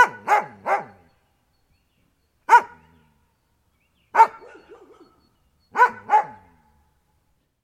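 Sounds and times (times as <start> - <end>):
dog barking: 0.0 - 1.1, 2.5 - 2.9, 4.1 - 6.6.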